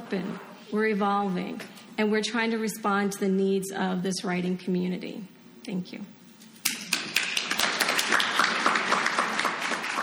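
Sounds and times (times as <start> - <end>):
speech: 0.1 - 6.2
crowd clapping: 6.6 - 10.0.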